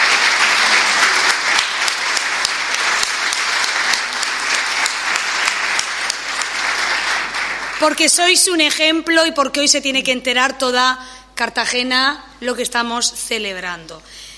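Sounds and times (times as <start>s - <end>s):
audience applause: 0.0s - 8.4s
speech: 7.8s - 14.3s.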